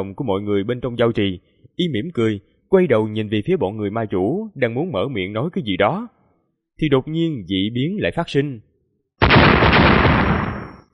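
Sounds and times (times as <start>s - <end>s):
speech: 0.0s - 6.2s, 6.8s - 8.7s
explosions: 9.2s - 10.9s.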